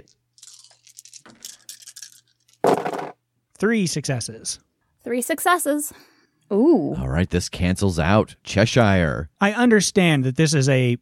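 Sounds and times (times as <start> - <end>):
dice rattling and clattering: 0.0 - 3.2
speech: 3.6 - 11.0.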